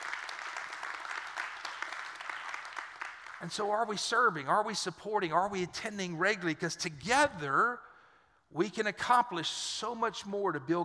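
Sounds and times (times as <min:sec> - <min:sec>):
audience clapping: 0:00.0 - 0:04.2
speech: 0:03.4 - 0:07.9, 0:08.5 - 0:10.8.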